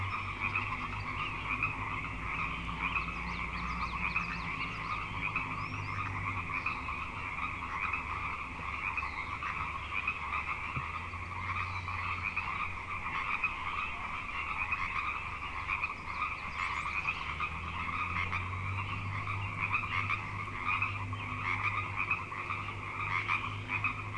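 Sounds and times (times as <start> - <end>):
frog chorus trilling: 0.0 - 24.1.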